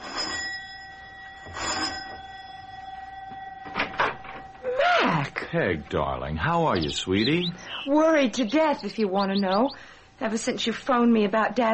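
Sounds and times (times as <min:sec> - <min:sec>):
electric doorbell buzzing: 0:00.0 - 0:07.2
speech: 0:05.5 - 0:11.7.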